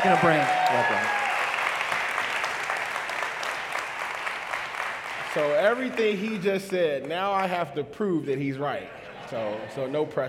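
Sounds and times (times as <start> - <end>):
speech: 0.0 - 1.2, 5.3 - 10.2
crowd round of applause: 0.0 - 7.5.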